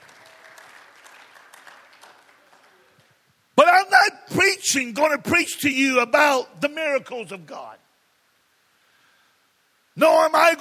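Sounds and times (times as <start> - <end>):
audience clapping: 0.0 - 3.2
speech: 4.0 - 7.8, 10.0 - 10.5.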